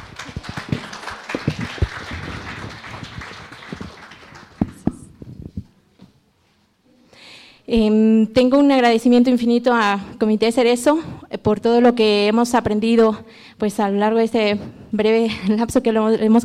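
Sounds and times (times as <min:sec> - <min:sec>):
audience applause: 0:00.0 - 0:05.1
speech: 0:07.7 - 0:16.4.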